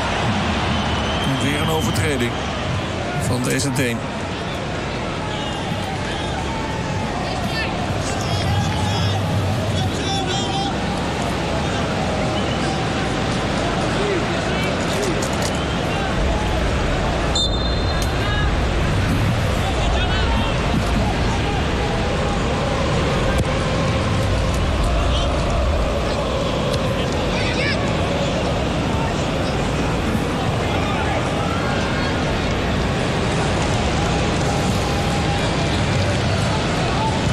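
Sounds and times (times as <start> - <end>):
sports crowd roaring and murmuring: 0.0 - 37.3
whistles and shouts: 0.1 - 2.7, 17.3 - 18.4
speech: 1.6 - 2.6, 3.3 - 4.2.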